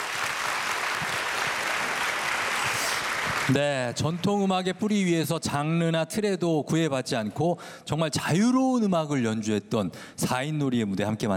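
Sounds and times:
audience applause: 0.0s - 4.2s
speech: 3.5s - 11.3s.

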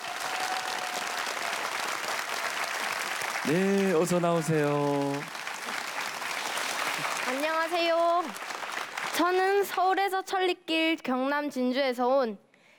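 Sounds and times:
audience applause: 0.0s - 9.8s
speech: 3.4s - 5.4s, 7.3s - 8.4s, 9.2s - 12.4s.

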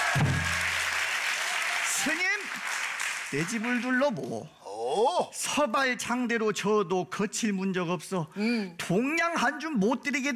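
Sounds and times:
audience applause: 0.0s - 4.3s
speech: 3.3s - 10.3s.

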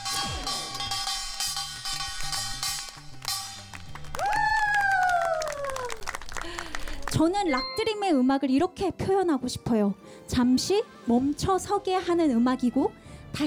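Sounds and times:
audience applause: 3.2s - 7.4s
speech: 7.2s - 13.4s.

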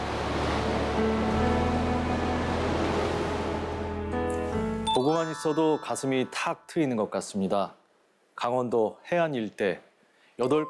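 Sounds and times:
surf washing along a shoreline: 0.0s - 4.9s
speech: 5.0s - 7.8s, 8.4s - 10.6s.

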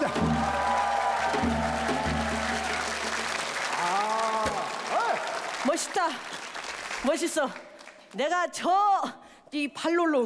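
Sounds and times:
audience applause: 0.0s - 8.0s
speech: 7.0s - 10.2s.

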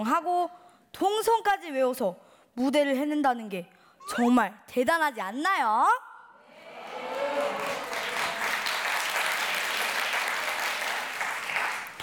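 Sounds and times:
speech: 0.0s - 6.1s
audience applause: 6.6s - 12.0s.

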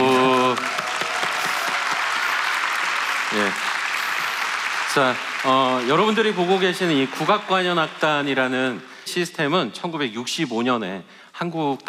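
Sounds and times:
audience applause: 0.0s - 8.8s
speech: 5.0s - 11.8s.

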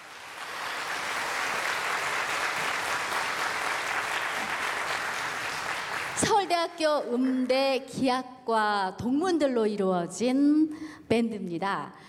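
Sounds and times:
audience applause: 0.0s - 6.3s
speech: 6.6s - 12.0s.

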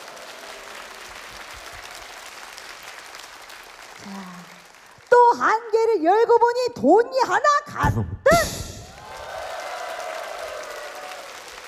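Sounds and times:
audience applause: 0.0s - 5.2s, 8.8s - 11.6s
speech: 4.0s - 4.6s, 5.3s - 8.6s.

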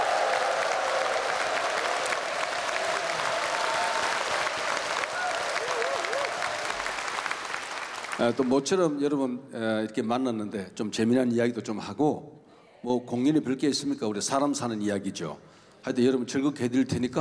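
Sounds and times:
audience applause: 0.0s - 8.7s
speech: 8.2s - 17.1s.

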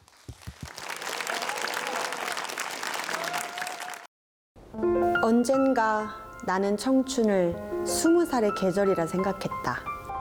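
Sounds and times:
audience applause: 0.0s - 4.1s
crowd cheering and whoops: 0.0s - 4.1s
speech: 5.2s - 9.9s.

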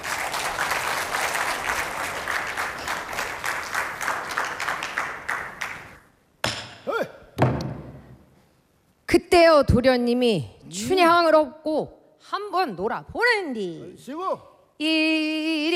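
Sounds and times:
audience applause: 0.0s - 6.0s
speech: 9.1s - 15.7s.

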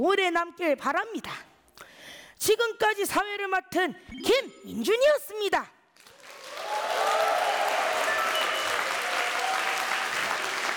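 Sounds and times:
speech: 0.0s - 1.5s, 2.4s - 5.8s
audience applause: 6.0s - 10.7s.

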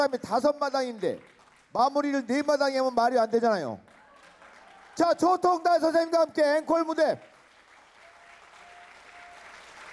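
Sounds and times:
speech: 0.0s - 3.9s, 5.0s - 7.3s
audience applause for an encore by traditional Korean singers: 3.9s - 5.4s, 7.2s - 9.9s.

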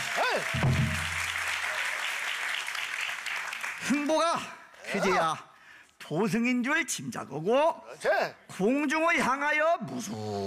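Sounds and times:
audience applause: 0.0s - 4.1s
speech: 0.4s - 0.8s, 3.9s - 5.5s, 6.1s - 10.4s.

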